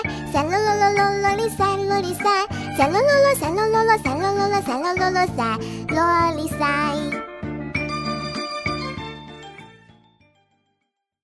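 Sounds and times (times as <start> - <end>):
children's song: 0.0 - 7.3.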